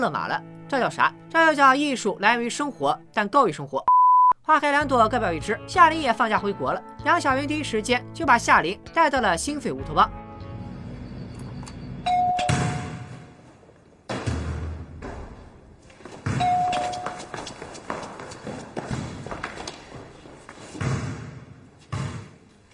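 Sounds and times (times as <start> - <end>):
speech: 0.0 - 3.9, 4.5 - 10.2
doorbell ringing: 12.1 - 13.1, 16.4 - 17.3
hurried thumping footsteps: 13.4 - 22.7.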